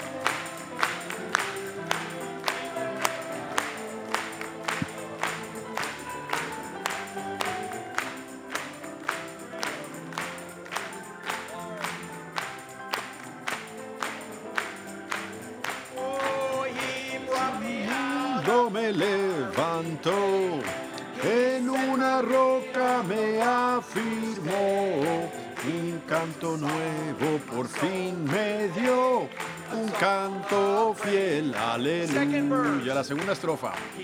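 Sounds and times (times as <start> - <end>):
audience applauding: 0.0 - 34.0
speech: 26.1 - 29.3, 29.9 - 34.0.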